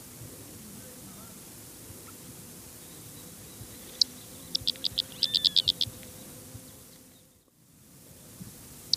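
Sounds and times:
Fork-tailed flycatcher Tyrannus savana ticking calls: 0:02.8 - 0:07.2.

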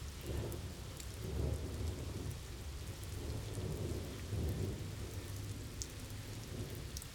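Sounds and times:
thunderstorm in the fields: 0:00.2 - 0:07.0.

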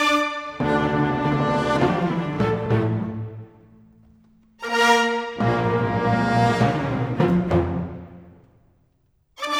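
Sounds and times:
orchestral music: 0:00.0 - 0:04.0, 0:04.6 - 0:08.6.

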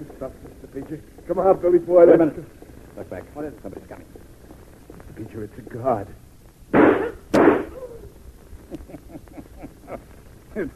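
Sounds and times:
speech: 0:00.0 - 0:04.1, 0:05.2 - 0:06.2, 0:10.6 - 0:10.7
gunshots in a radio drama bank scene: 0:06.7 - 0:07.8.

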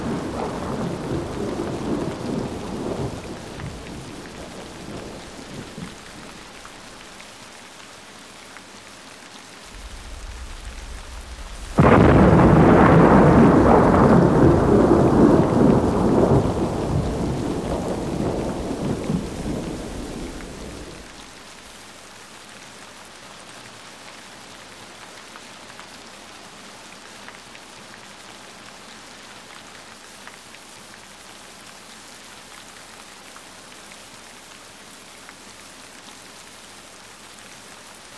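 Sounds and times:
thunder: 0:00.0 - 0:07.1, 0:09.7 - 0:21.4
rain: 0:00.0 - 0:38.1.

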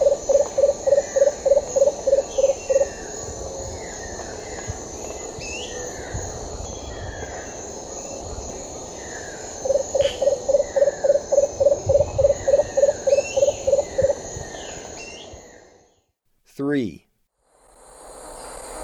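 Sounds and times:
Lemon-throated Barbet calling in the eastern lowlands of South America: 0:00.0 - 0:03.1, 0:09.6 - 0:15.3.

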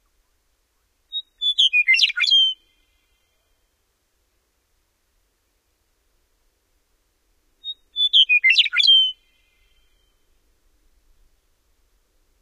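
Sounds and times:
Western meadowlark singing in North America: 0:01.1 - 0:03.5, 0:07.6 - 0:10.2.

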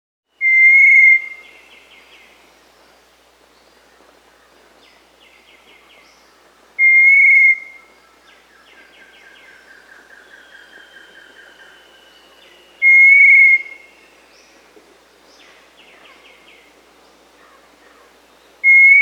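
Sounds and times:
Little Tinamou Crypturellus soui whistling in South America: 0:00.4 - 0:01.4, 0:06.8 - 0:07.7, 0:12.8 - 0:13.8, 0:18.6 - 0:19.0.

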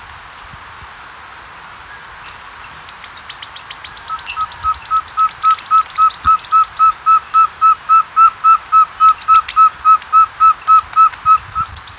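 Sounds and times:
Andean Pygmy Owl in South America: 0:03.7 - 0:11.9.

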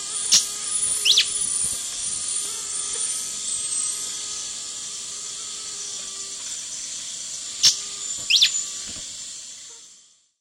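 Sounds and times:
slate-colored antbird giving slurred whistled notes in the eastern lowlands of South America: 0:00.3 - 0:01.6, 0:07.6 - 0:08.6.

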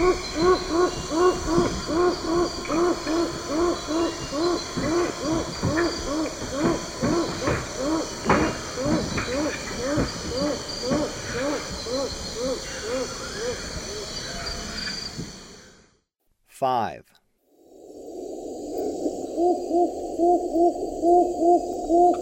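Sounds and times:
Rufescent tiger heron hooting in Ecuador: 0:00.0 - 0:13.7, 0:19.3 - 0:22.2.

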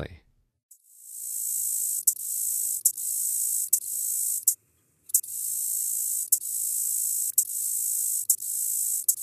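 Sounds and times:
red-headed meadow katydid singing in North America: 0:00.7 - 0:09.2.

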